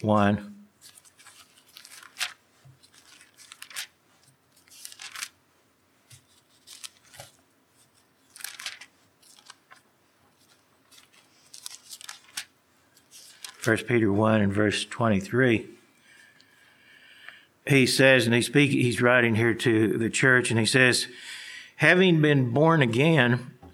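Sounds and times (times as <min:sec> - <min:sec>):
speech: 0:00.0 - 0:00.5, 0:13.6 - 0:15.8, 0:17.7 - 0:23.6
thin Bible pages rustling as they are turned: 0:00.8 - 0:05.4, 0:06.0 - 0:13.9.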